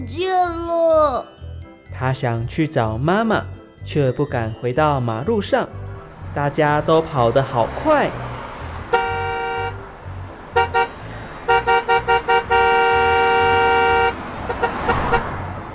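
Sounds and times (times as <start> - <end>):
speech: 0.0 - 8.3
big truck horn honking: 8.6 - 15.6.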